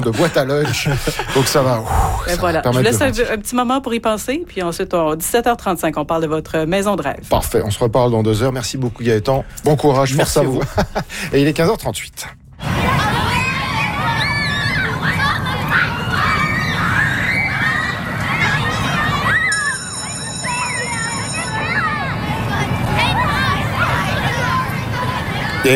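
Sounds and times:
laughter: 0.0 - 3.4, 10.1 - 11.3
speech: 0.0 - 13.0
schoolchildren's voices babbling: 12.6 - 25.7
electronic school bell ringing: 19.3 - 22.5.

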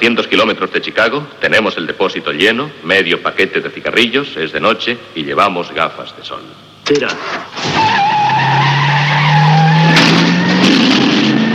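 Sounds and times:
speech: 0.0 - 8.7
car engine roar: 7.0 - 11.5
car tires screeching as it speeds off: 7.1 - 11.5.

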